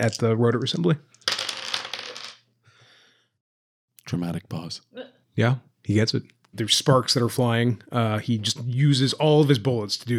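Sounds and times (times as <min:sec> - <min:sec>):
speech: 0:00.0 - 0:01.4, 0:04.1 - 0:10.1
dice clattering across a hard tabletop: 0:01.1 - 0:02.4.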